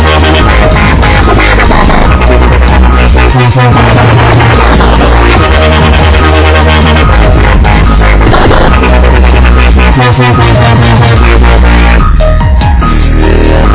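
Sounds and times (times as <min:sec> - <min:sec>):
dubstep remix of a computer startup sound: 0:00.0 - 0:13.7.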